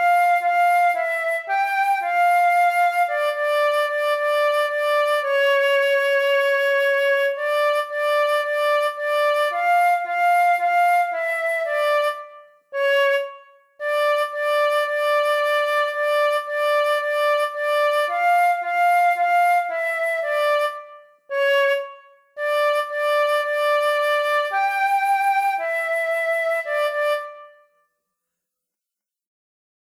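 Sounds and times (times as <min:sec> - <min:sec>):
flute playing a folk dance tune: 0:00.0 - 0:27.8.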